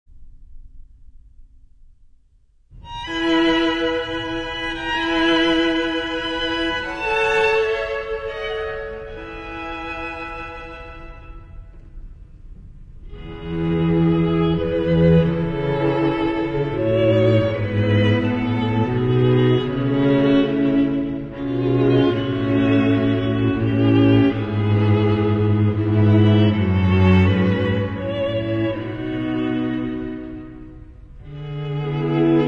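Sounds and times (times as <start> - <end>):
string quartet: 2.8 - 32.4.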